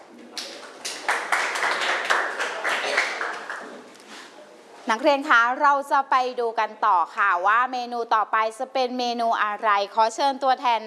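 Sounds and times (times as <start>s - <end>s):
students clapping hands: 0.0s - 4.0s
speech: 4.9s - 10.8s.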